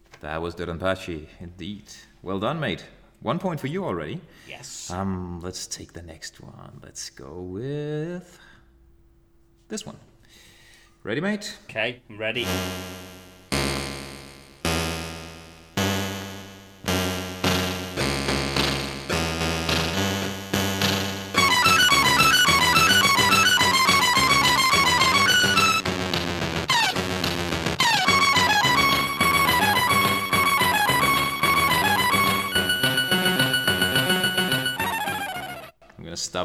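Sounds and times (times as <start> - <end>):
speech: 0.2 - 8.5, 9.7 - 13.0
chiptune video game soundtrack music: 12.4 - 35.7.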